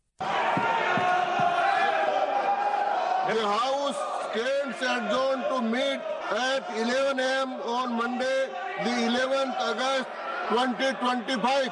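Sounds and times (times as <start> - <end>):
opposition members shouting slogans in parliament: 0.2 - 3.2
speech: 3.4 - 11.7.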